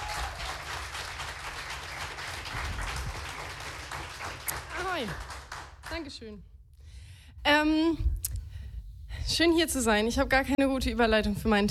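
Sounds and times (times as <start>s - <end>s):
audience applause: 0.0s - 6.1s
speech: 5.0s - 5.3s, 5.9s - 6.5s, 7.4s - 8.2s, 9.3s - 11.6s.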